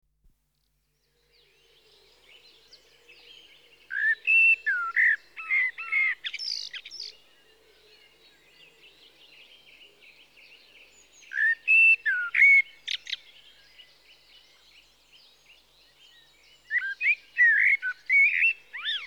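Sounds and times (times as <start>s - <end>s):
common blackbird Turdus merula singing: 1.2s - 19.0s.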